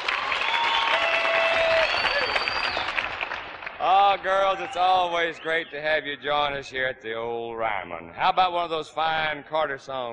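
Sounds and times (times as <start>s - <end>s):
audience applause at the Ryman welcoming performers: 0.0s - 5.6s
speech: 4.1s - 10.1s.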